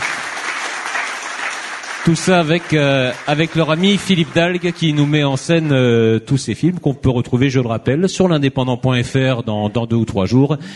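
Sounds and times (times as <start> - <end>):
audience applause: 0.0 - 6.0
speech: 2.0 - 10.7.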